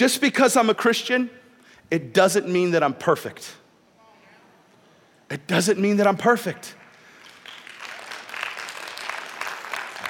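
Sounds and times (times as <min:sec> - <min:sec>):
speech: 0:00.0 - 0:03.6, 0:05.3 - 0:06.8
audience clapping: 0:06.8 - 0:10.0.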